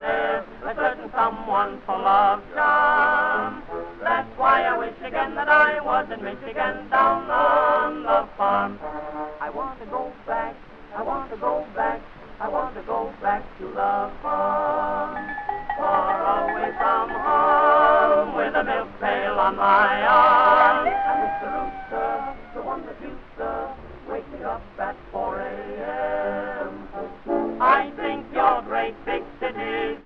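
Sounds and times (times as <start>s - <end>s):
tenor singing: 0.0s - 30.0s
orchestra accompaniment: 15.2s - 18.2s.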